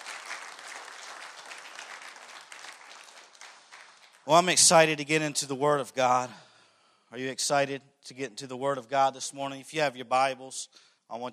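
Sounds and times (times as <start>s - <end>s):
audience clapping: 0.0s - 5.0s
speech: 4.2s - 6.4s, 7.1s - 11.3s.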